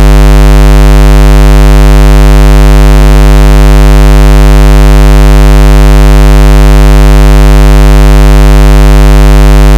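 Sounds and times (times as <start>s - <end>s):
square wave test tone: 0.0s - 9.7s.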